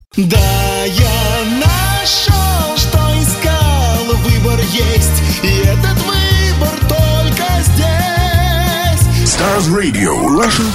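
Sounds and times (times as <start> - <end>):
vocals: 0.0 - 10.7.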